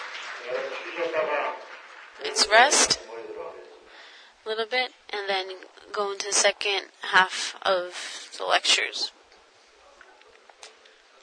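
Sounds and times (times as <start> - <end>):
crowd applause: 0.0 - 3.7
speech: 2.3 - 3.0, 4.4 - 9.2.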